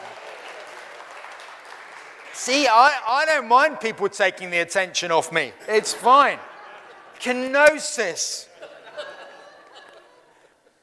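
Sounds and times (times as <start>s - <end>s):
round of applause: 0.0s - 3.0s
speech: 2.4s - 6.5s, 7.2s - 8.5s
laughter: 5.6s - 10.8s.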